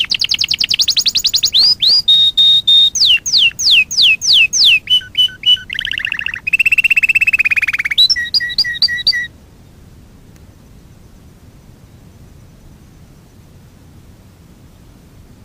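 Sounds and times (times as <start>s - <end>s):
Fife canary singing: 0.0s - 9.3s.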